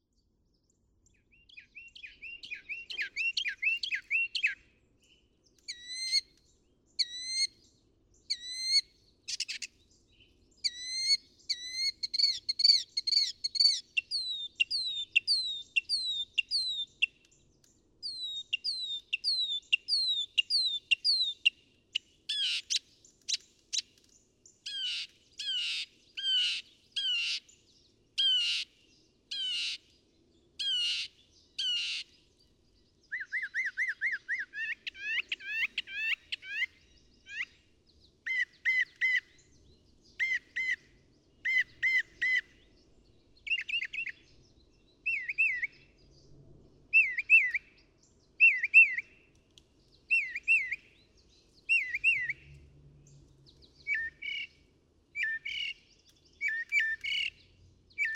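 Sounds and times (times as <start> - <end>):
Northern Mockingbird singing: 1.3 - 4.6, 5.5 - 6.3, 7.0 - 7.5, 10.6 - 17.3, 18.0 - 24.0, 24.6 - 27.5, 28.2 - 28.7, 29.3 - 29.8, 30.6 - 32.1, 33.0 - 37.6, 38.3 - 39.5, 40.1 - 40.8, 41.4 - 42.5, 43.4 - 44.4, 45.0 - 45.8, 48.3 - 49.1, 50.0 - 52.6, 53.6 - 54.6, 55.2 - 58.1.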